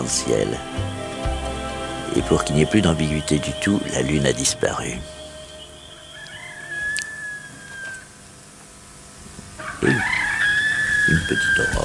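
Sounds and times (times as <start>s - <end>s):
speech: 0.0s - 0.9s, 2.1s - 5.2s, 11.3s - 11.8s
rooster crowing: 5.1s - 8.3s, 9.6s - 11.8s.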